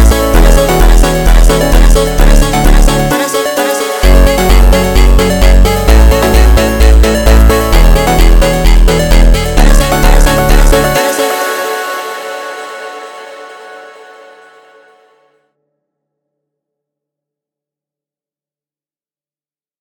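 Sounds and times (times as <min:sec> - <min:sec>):
funk music: 0:00.0 - 0:15.2.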